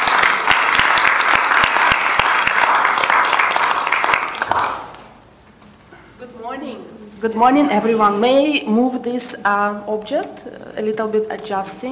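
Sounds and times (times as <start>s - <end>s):
audience applause: 0.0s - 5.0s
speech: 7.2s - 11.9s.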